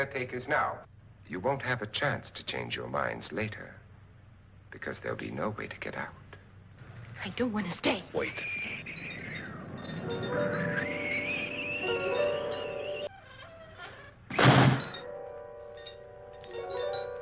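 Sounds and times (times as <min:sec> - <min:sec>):
speech: 0:00.0 - 0:03.8, 0:04.7 - 0:06.2, 0:07.2 - 0:09.1, 0:10.0 - 0:11.0
door closing shut: 0:08.3 - 0:15.1.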